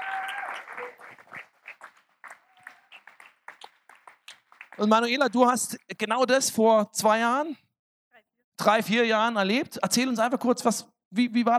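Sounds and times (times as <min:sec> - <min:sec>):
audience applause: 0:00.0 - 0:05.2
speech: 0:00.8 - 0:01.4, 0:04.8 - 0:07.6, 0:08.6 - 0:11.5.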